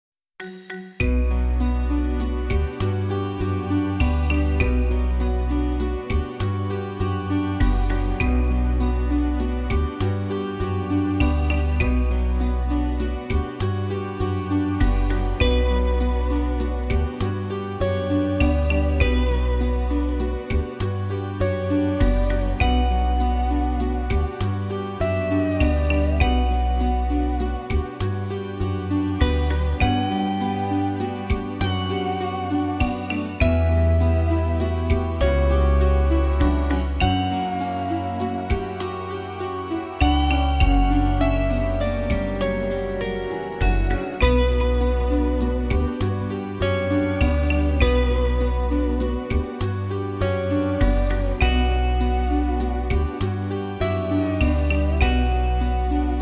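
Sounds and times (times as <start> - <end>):
music: 0.4 - 56.2.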